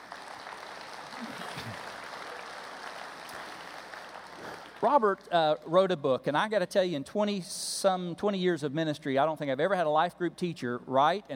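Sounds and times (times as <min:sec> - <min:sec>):
audience applause in a church: 0:00.0 - 0:05.4
speech: 0:04.8 - 0:11.3.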